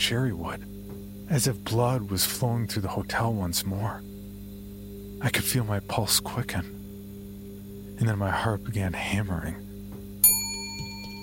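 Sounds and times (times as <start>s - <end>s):
speech: 0.0s - 4.1s, 5.2s - 6.8s, 8.0s - 9.6s
bell dinging: 10.2s - 11.2s.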